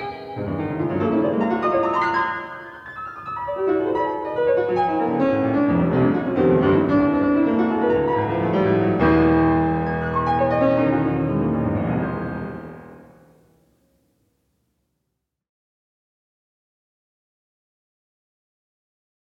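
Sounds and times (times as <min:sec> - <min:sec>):
piano piece: 0:00.0 - 0:14.2.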